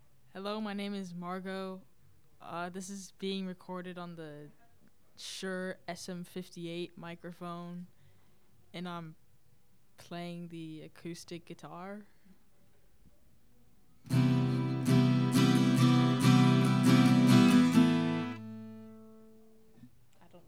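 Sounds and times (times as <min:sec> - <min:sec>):
guitar: 0:14.1 - 0:19.6.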